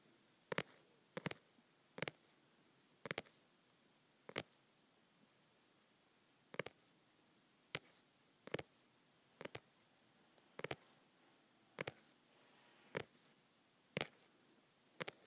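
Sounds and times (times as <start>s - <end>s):
faint steady hiss: 0.0s - 15.2s
fingers tapping on a softcover book: 0.5s - 1.4s, 2.0s - 2.3s, 3.0s - 3.4s, 4.3s - 4.6s, 6.6s - 6.8s, 9.4s - 9.7s, 10.6s - 10.8s, 13.9s - 14.3s, 15.0s - 15.2s.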